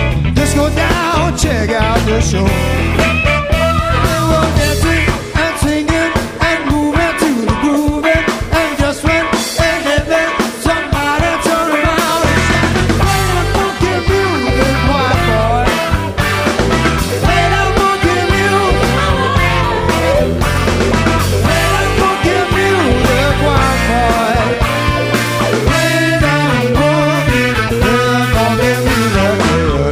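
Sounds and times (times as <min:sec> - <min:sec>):
funky music: 0:00.0 - 0:29.8.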